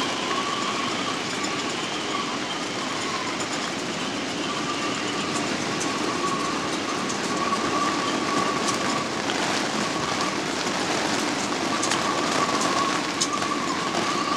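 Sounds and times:
rain on a yacht recorded in the cockpit: 0.0s - 14.3s
gale force wind on a yacht recorded in the cockpit: 3.8s - 14.3s.

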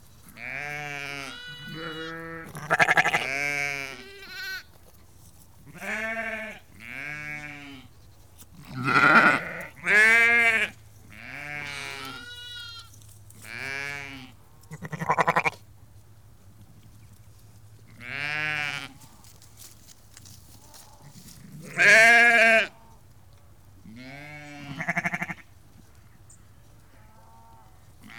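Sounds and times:
ewes and lambs bleating: 0.3s - 4.7s, 5.7s - 7.9s, 8.6s - 15.6s, 18.0s - 19.0s, 20.7s - 22.9s, 23.9s - 25.4s, 27.0s - 28.1s.

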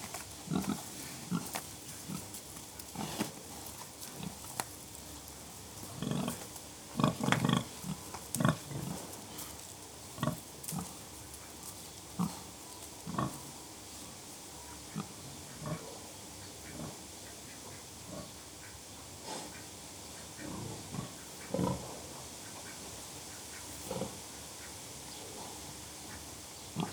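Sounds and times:
several pigs grunting: 0.5s - 4.5s, 5.8s - 9.6s, 10.2s - 13.6s, 14.8s - 19.7s, 20.4s - 22.8s, 23.5s - 24.2s, 26.8s - 26.9s.

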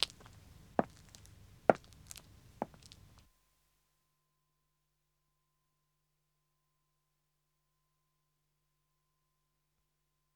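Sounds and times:
woman walking on pavement: 0.0s - 3.3s.

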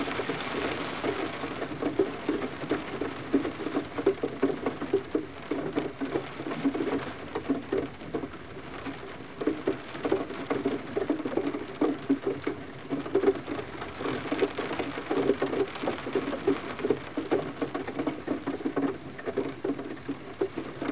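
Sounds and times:
rain on window heard from interior: 0.0s - 20.9s
water dripping off roof: 0.0s - 20.9s.

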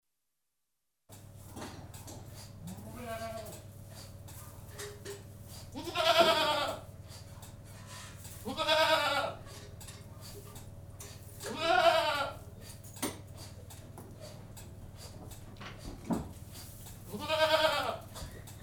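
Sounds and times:
domestic goat bleating in a goat-house: 2.7s - 3.6s, 5.7s - 6.9s, 8.4s - 9.4s, 11.4s - 12.4s, 17.1s - 18.3s.

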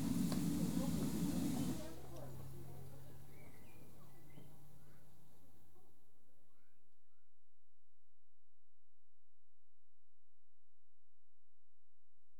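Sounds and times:
train arriving: 0.0s - 2.5s.

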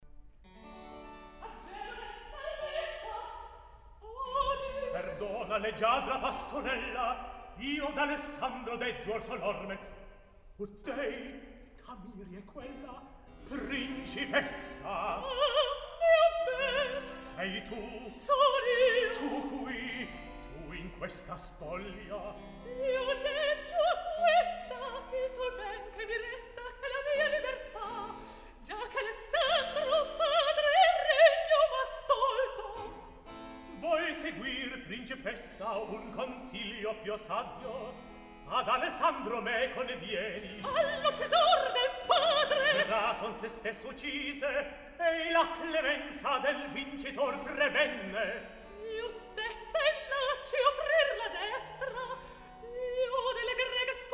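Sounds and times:
recitative singing: 1.4s - 33.1s, 33.7s - 54.1s.

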